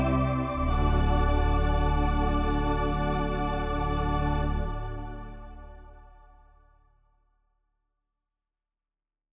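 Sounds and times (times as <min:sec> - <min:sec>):
Hammond organ: 0:00.0 - 0:05.9.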